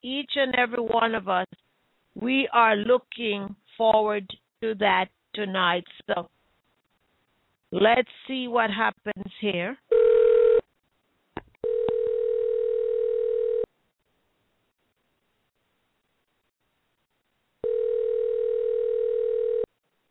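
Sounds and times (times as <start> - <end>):
speech: 0.0 - 1.6, 2.2 - 6.4, 7.7 - 10.1
phone call ringback tone: 9.9 - 10.6, 11.6 - 13.7, 17.6 - 19.7.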